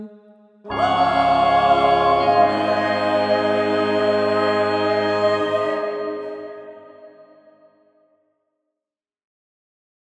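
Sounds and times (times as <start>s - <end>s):
choir singing: 0.7s - 7.6s.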